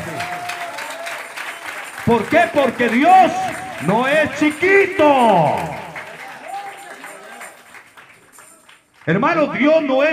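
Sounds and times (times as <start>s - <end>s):
audience clapping hands: 0.0s - 9.2s
speech: 2.0s - 5.7s, 9.1s - 10.1s.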